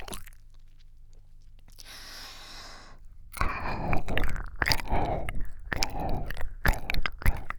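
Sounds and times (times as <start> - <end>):
breathing into ear: 1.8 - 7.5.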